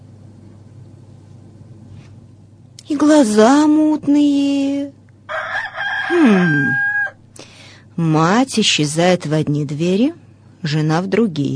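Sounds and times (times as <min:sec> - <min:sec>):
speech: 0:02.9 - 0:05.0, 0:06.1 - 0:06.8, 0:08.0 - 0:11.5
rooster crowing: 0:05.3 - 0:07.2.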